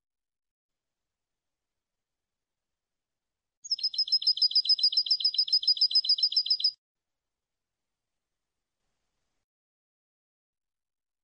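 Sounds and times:
European goldfinch singing: 3.7s - 6.8s.

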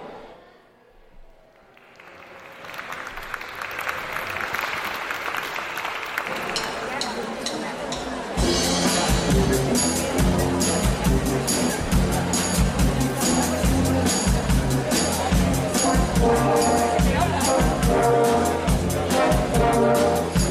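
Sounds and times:
crowd noise: 0.0s - 20.5s
audience applause: 1.6s - 7.4s.

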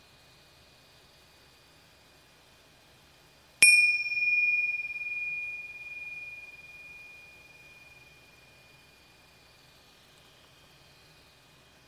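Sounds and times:
small bells chiming: 3.6s - 7.7s.

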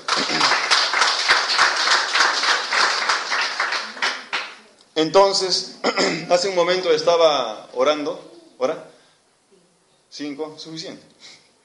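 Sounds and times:
audience applause: 0.0s - 4.6s
speech: 5.0s - 8.9s, 10.1s - 11.4s.

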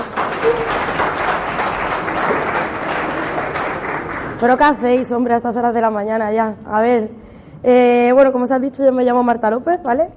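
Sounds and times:
conference audience applauding: 0.0s - 4.9s
speech: 4.4s - 10.1s.

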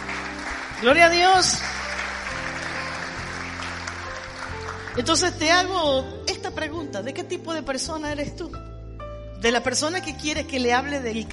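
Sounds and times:
crowd clapping: 0.0s - 5.5s
speech: 0.8s - 1.8s, 5.0s - 8.7s, 9.4s - 11.3s.

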